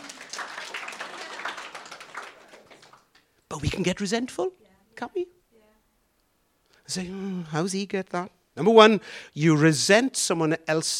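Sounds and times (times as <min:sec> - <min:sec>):
audience applause: 0:00.0 - 0:03.2
speech: 0:03.5 - 0:05.4, 0:06.9 - 0:10.9.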